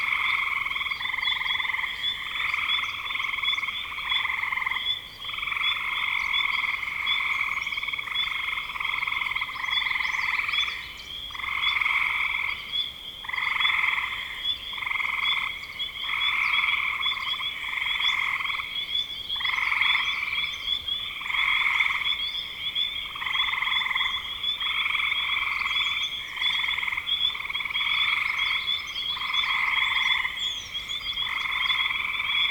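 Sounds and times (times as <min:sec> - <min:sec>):
chorus of frogs trilling: 0:00.0 - 0:32.5.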